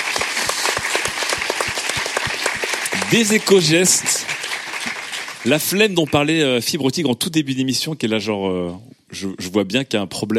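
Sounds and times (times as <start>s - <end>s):
audience applause: 0.0s - 6.7s
speech: 3.1s - 4.3s, 5.4s - 10.3s.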